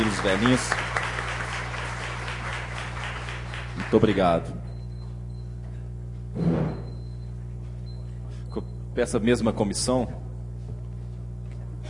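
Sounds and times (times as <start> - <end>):
audience applause: 0.0 - 4.3
speech: 0.1 - 1.0, 3.8 - 4.6, 6.4 - 6.8, 8.5 - 10.2.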